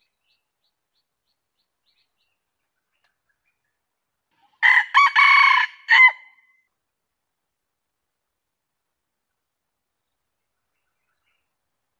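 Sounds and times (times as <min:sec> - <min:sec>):
junglefowl crowing: 0:04.6 - 0:06.4.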